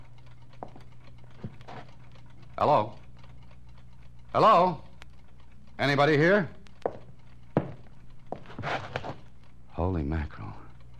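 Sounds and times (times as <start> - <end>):
many clocks ticking in a shop: 0.0 - 10.9
speech: 2.6 - 3.0, 4.4 - 4.9, 5.8 - 6.6, 9.9 - 10.6.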